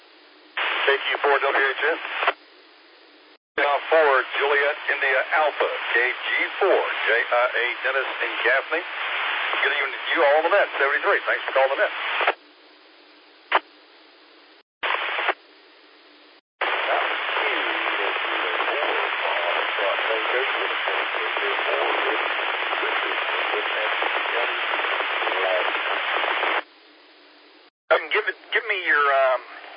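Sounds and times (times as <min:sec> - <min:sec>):
band-limited radio static over a ham radio transmission: 0:00.6 - 0:02.4, 0:03.6 - 0:12.4, 0:13.4 - 0:13.7, 0:14.8 - 0:15.4, 0:16.6 - 0:26.7, 0:27.9 - 0:29.7
speech: 0:00.9 - 0:02.4, 0:03.9 - 0:12.4.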